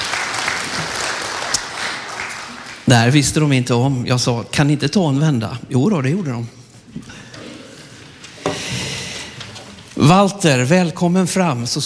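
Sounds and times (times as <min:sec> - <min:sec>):
audience applause at a sung performance: 0:00.0 - 0:02.9
speech: 0:02.9 - 0:06.6, 0:10.0 - 0:11.8.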